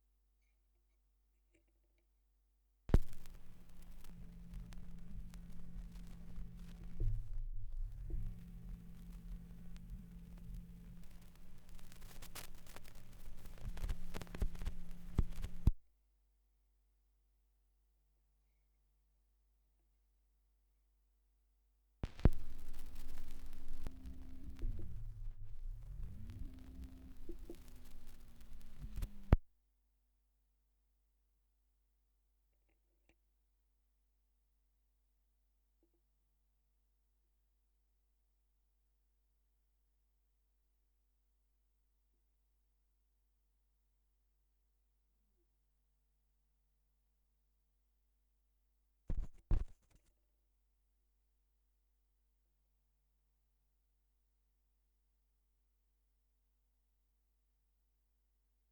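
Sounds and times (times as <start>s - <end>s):
78rpm gramophone record surface noise: 2.9s - 15.8s, 22.0s - 29.4s, 49.1s - 50.0s.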